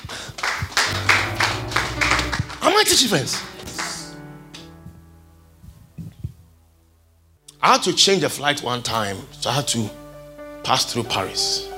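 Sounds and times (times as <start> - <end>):
audience clapping hands: 0.0 - 4.7
speech: 2.8 - 3.6, 7.6 - 10.0, 10.7 - 11.7.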